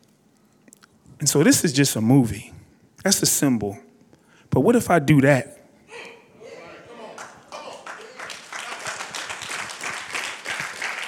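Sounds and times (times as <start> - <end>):
speech: 1.2 - 3.9, 4.5 - 6.1
audience clapping: 7.0 - 11.0.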